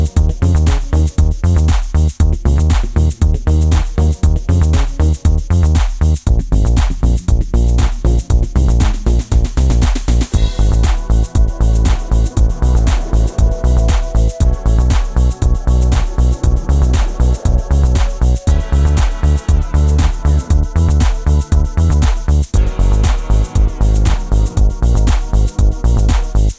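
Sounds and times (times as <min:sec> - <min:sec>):
electronic music: 0:00.0 - 0:26.5.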